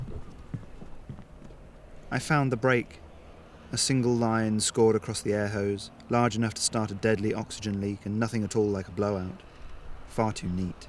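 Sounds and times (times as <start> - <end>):
boots walking on a wooden pier: 0.0 - 1.9
speech: 2.1 - 3.0, 3.7 - 9.5, 10.1 - 10.8.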